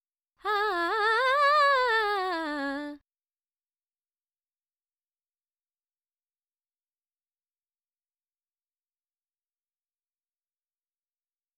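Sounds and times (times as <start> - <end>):
dry female vocals: 0.4 - 3.0.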